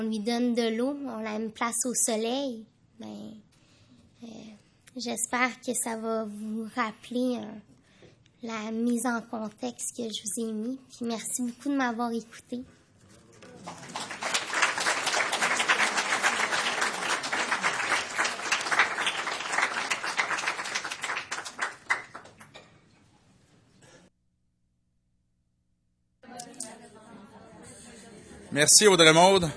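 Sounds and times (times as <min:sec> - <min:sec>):
speech: 0:00.0 - 0:03.5, 0:04.2 - 0:07.7, 0:08.4 - 0:12.8, 0:13.6 - 0:14.2, 0:28.6 - 0:29.5
audience applause: 0:13.6 - 0:22.5.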